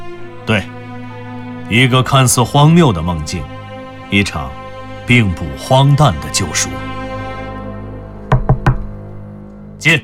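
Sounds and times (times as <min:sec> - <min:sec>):
speech: 0:00.5 - 0:00.8, 0:01.7 - 0:07.0, 0:09.8 - 0:10.0
urgent knocking on office door: 0:08.3 - 0:09.0.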